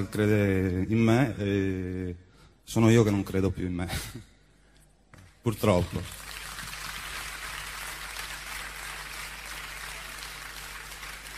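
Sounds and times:
speech: 0:00.0 - 0:04.3, 0:05.4 - 0:06.3
audience applause: 0:06.0 - 0:11.3.

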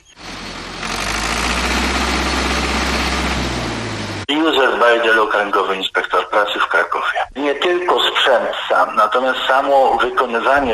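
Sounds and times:
tractor engine idling: 0:00.0 - 0:04.3
speech: 0:04.5 - 0:10.7.

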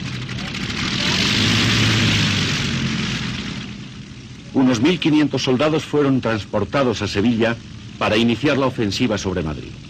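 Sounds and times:
propeller engines of a squadron of Junkers transport planes droning: 0:00.0 - 0:09.8
speech: 0:04.6 - 0:09.8.

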